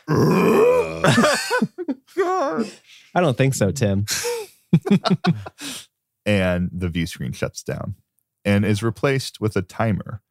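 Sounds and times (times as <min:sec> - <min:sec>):
speech: 0:00.0 - 0:00.5, 0:01.1 - 0:10.2
person imitating a ship groaning: 0:00.0 - 0:01.3
laughter: 0:01.0 - 0:02.8, 0:04.0 - 0:05.8.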